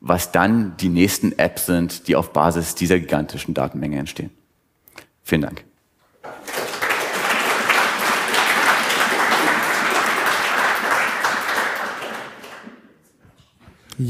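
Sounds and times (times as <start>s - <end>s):
speech: 0.0s - 4.4s, 5.3s - 6.4s
spontaneous audience applause: 6.2s - 12.9s.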